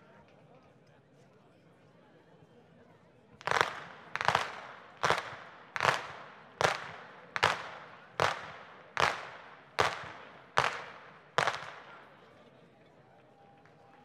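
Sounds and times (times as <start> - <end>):
youth whip cracking: 3.4 - 12.0.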